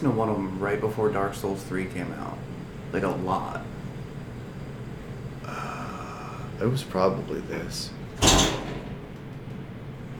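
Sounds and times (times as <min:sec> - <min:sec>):
speech: 0:00.0 - 0:03.7, 0:06.6 - 0:08.6
refrigerator door shutting: 0:08.2 - 0:09.2.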